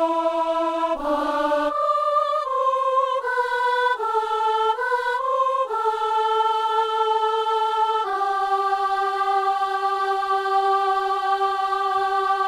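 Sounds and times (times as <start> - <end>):
soprano singing: 0.0 - 12.4.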